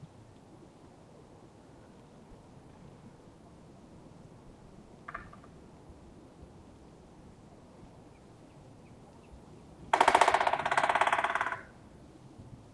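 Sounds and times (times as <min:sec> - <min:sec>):
Black Woodpecker Dryocopus martius: 0:05.0 - 0:05.6, 0:09.9 - 0:11.8.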